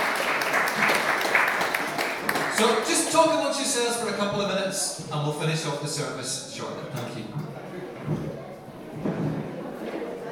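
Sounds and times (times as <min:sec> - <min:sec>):
crowd clapping: 0:00.0 - 0:03.4
speech: 0:02.6 - 0:08.3.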